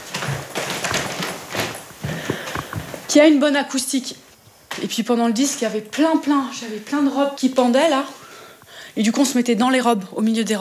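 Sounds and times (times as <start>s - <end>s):
footsteps climbing stairs up to an attic: 0.0s - 3.1s
speech: 3.1s - 8.2s, 9.0s - 10.5s.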